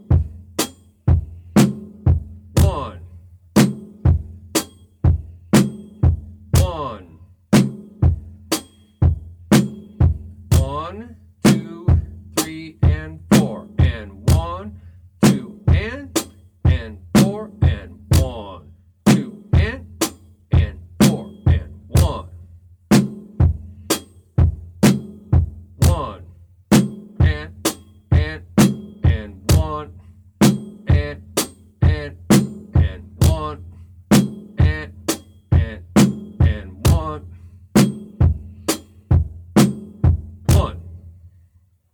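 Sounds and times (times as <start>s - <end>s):
drum beat: 0.0s - 41.2s
rhythm syllables spoken: 2.6s - 3.1s, 6.5s - 7.2s, 10.5s - 22.4s, 25.8s - 26.4s, 27.2s - 30.0s, 30.8s - 33.7s, 34.6s - 37.4s, 40.5s - 40.9s.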